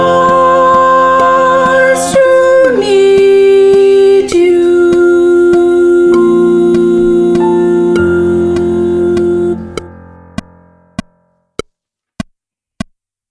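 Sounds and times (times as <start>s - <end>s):
dominant soprano singing: 0.0s - 10.1s.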